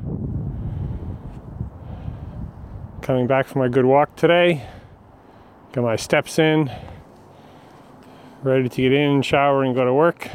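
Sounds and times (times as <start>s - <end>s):
winter wind outdoors buffeting the microphone: 0.0s - 7.2s
speech: 3.0s - 4.8s, 5.7s - 6.9s, 8.4s - 10.3s.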